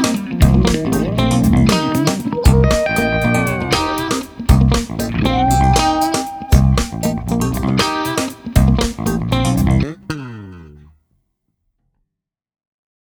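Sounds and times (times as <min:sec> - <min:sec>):
funk music: 0:00.0 - 0:10.1.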